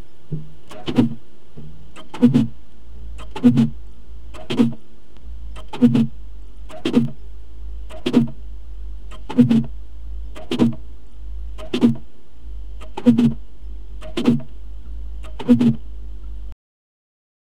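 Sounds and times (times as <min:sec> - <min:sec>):
car windshield wipers recorded inside a car: 0:00.2 - 0:04.9, 0:05.5 - 0:07.2, 0:07.9 - 0:08.4, 0:09.1 - 0:10.9, 0:11.5 - 0:12.1, 0:12.8 - 0:13.4, 0:14.0 - 0:15.9.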